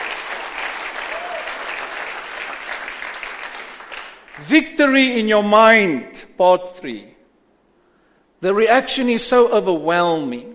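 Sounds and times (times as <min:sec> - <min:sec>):
audience clapping: 0:00.0 - 0:04.6
speech: 0:04.4 - 0:07.1, 0:08.4 - 0:10.5.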